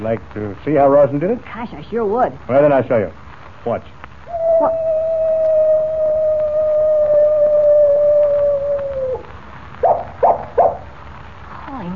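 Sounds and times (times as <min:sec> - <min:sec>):
speech: 0:00.0 - 0:04.0, 0:04.6 - 0:05.0
coyote howling: 0:04.2 - 0:10.9.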